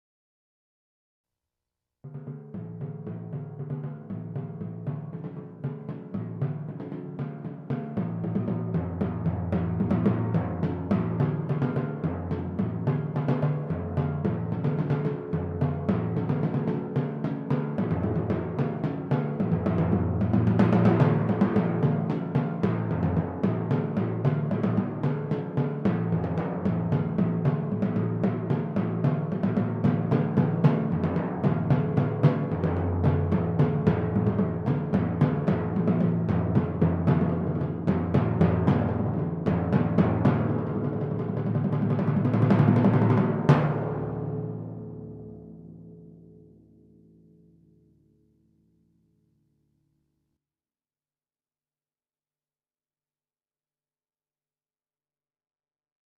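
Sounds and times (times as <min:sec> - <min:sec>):
timpani: 0:02.1 - 0:45.2.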